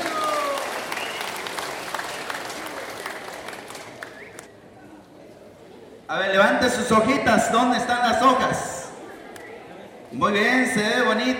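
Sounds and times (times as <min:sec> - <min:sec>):
crowd applause: 0:00.0 - 0:04.5
speech: 0:06.1 - 0:08.8, 0:10.1 - 0:11.3.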